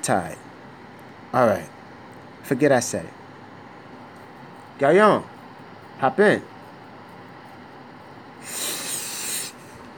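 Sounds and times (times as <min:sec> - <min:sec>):
speech: 0:00.0 - 0:00.4, 0:01.3 - 0:01.8, 0:02.4 - 0:03.2, 0:04.8 - 0:05.3, 0:06.0 - 0:06.5
low noise: 0:00.0 - 0:09.9
person snorting a line of drugs: 0:08.4 - 0:09.8.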